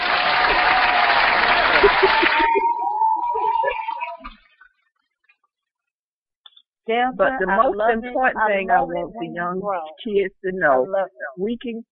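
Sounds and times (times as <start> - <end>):
audience hand clapping: 0.0 - 2.8
laughter: 1.2 - 4.4
speech: 1.8 - 2.4, 6.9 - 11.8.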